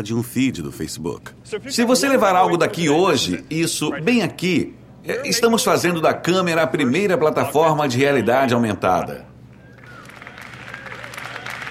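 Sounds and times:
speech: 0.0 - 9.3
faint tonal whine: 1.3 - 11.6
crowd applauding: 9.6 - 11.6.

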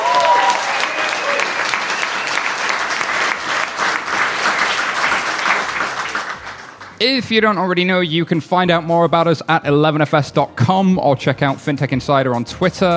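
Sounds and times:
audience cheering: 0.0 - 7.3
speech: 7.0 - 12.9.

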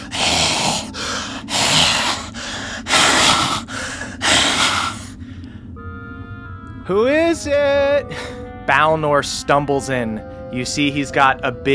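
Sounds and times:
person imitating raspy labored breathing: 0.0 - 5.2
speech: 6.9 - 11.7.

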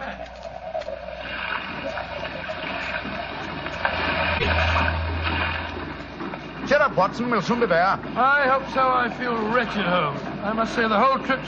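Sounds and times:
wind: 0.0 - 11.4
rough sea splashing around a small fishing boat: 0.2 - 11.4
low boat engine drone: 1.0 - 7.4
speech: 6.9 - 11.4.

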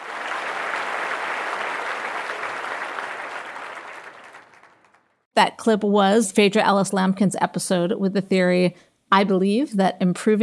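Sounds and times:
audience applause: 0.0 - 5.2
speech: 5.4 - 10.4.

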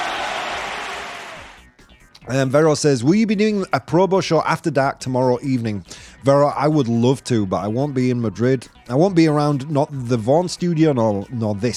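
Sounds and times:
round of applause: 0.0 - 1.6
speech: 2.3 - 11.7.

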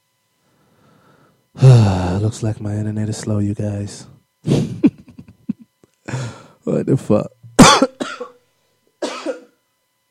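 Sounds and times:
speech: 2.2 - 4.6, 6.8 - 7.4
person coughing from something caught in the throat: 7.6 - 8.4, 9.0 - 9.6.

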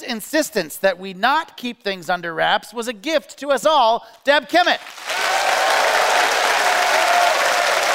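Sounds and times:
speech: 0.1 - 5.2
audience applause: 4.8 - 7.9.

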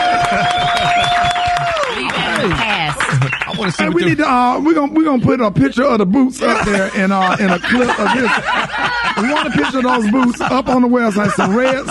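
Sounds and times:
round of applause: 0.0 - 4.1
speech: 3.9 - 8.6, 9.2 - 11.8.

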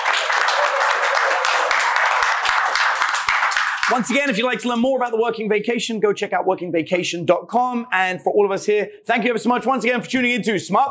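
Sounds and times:
audience round of applause: 0.0 - 4.3
speech: 3.9 - 10.9.

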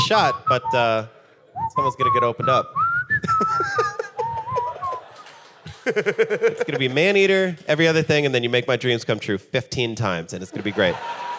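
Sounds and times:
person whistling a tune: 0.0 - 5.0
speech: 0.1 - 3.9, 5.8 - 11.3
laughter: 3.2 - 7.2, 10.5 - 11.3.

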